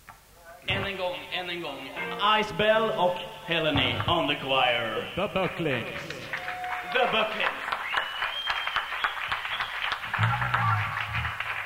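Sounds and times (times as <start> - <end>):
speech: 0.9 - 6.2, 7.0 - 7.6
crowd applauding: 3.9 - 11.6.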